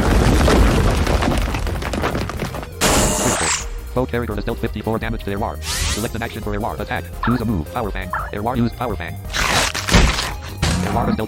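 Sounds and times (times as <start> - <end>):
stone pyramid attack effect from a video game battle: 0.0 - 3.2
speech: 4.0 - 9.4, 10.9 - 11.2.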